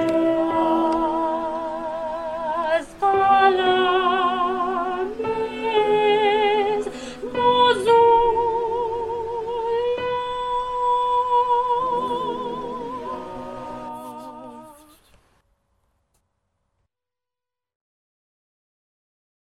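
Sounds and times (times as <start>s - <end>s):
soprano in choral music: 0.0s - 15.0s.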